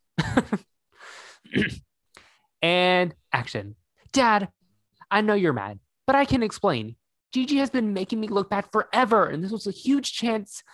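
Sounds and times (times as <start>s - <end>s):
speech: 0.4s - 0.7s, 1.4s - 1.9s, 2.6s - 10.7s
throat clearing: 1.4s - 1.9s.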